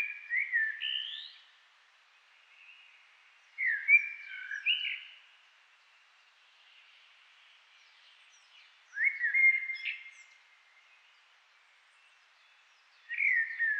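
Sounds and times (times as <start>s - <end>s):
Eurasian blackbird singing: 0.0s - 1.5s, 3.6s - 5.2s, 7.8s - 10.4s, 12.0s - 13.7s.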